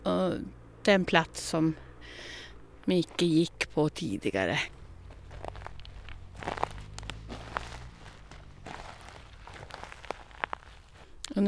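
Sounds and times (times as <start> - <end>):
speech: 0.2 - 4.8
rustling on pine forest floor: 2.0 - 11.4
footsteps of dog and owner crunching over pine forest floor: 2.5 - 11.4
twigs snapping: 4.7 - 11.4.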